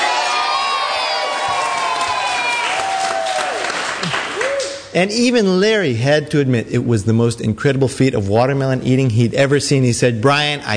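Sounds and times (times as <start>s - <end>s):
crowd cheering: 0.0s - 4.9s
speech: 4.9s - 10.7s.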